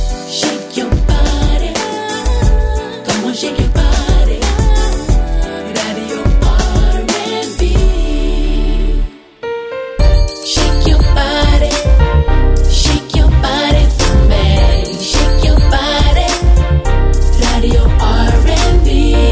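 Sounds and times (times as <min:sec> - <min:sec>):
R&B music on radio: 0:00.1 - 0:08.2, 0:10.0 - 0:19.2.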